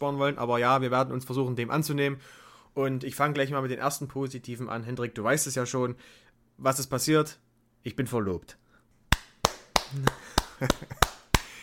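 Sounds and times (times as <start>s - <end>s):
speech: 0.0s - 8.6s, 9.9s - 11.1s
hand clapping: 9.1s - 11.6s.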